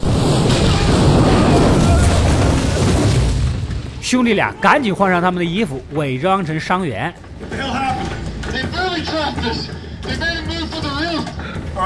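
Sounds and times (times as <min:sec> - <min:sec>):
improvised polyoxymethylene bomb exploding at a doorway in a TV drama: 0:00.0 - 0:05.9
speech: 0:04.1 - 0:08.2, 0:09.0 - 0:11.8.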